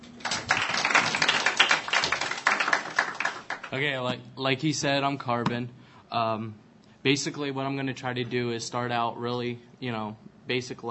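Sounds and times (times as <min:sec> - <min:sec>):
audience applause: 0:00.0 - 0:04.0
speech: 0:03.7 - 0:10.8.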